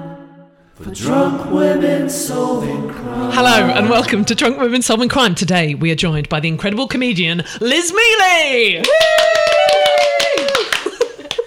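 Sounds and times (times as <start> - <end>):
speech: 0.8 - 9.3
clapping in a small room: 8.8 - 11.4.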